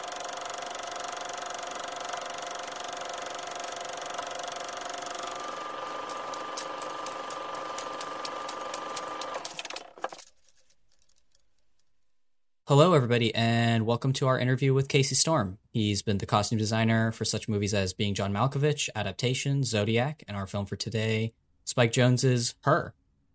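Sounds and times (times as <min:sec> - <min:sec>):
film projector whirring: 0:00.0 - 0:10.4
speech: 0:12.7 - 0:23.0.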